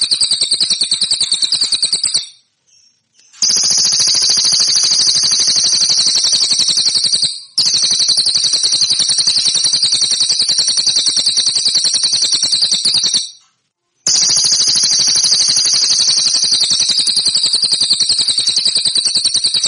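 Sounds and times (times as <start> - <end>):
song: 0.0 - 2.5, 3.2 - 13.4, 14.1 - 19.6.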